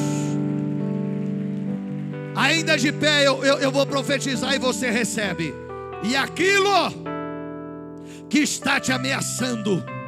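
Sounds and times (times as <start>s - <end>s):
audience applause: 0.0s - 4.8s
speech: 2.4s - 7.0s, 8.3s - 10.0s.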